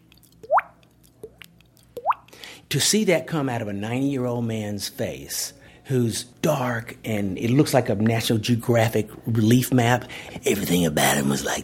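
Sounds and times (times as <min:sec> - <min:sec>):
man imitating a water drip by tapping his cheek and blowing water: 0:00.0 - 0:02.4
speech: 0:02.7 - 0:11.6.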